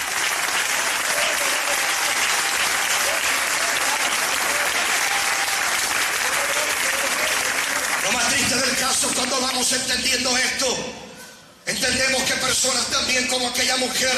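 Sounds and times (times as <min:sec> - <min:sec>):
crowd applause: 0:00.0 - 0:08.4
speech: 0:09.0 - 0:11.0, 0:11.8 - 0:14.1.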